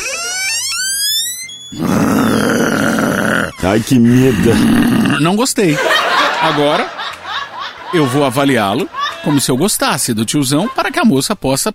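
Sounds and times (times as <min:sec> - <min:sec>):
speech: 0:01.7 - 0:02.2, 0:03.7 - 0:07.2, 0:07.9 - 0:11.7
person imitating a growling dog: 0:01.8 - 0:05.3
laughter: 0:05.7 - 0:11.0.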